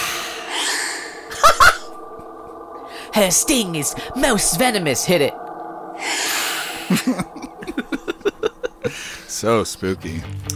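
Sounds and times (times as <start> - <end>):
human breath: 0.0 - 1.4, 2.8 - 3.2, 6.0 - 7.4, 8.8 - 9.3
speech: 3.2 - 5.4, 7.0 - 7.4, 9.4 - 10.5
laughter: 6.9 - 9.3.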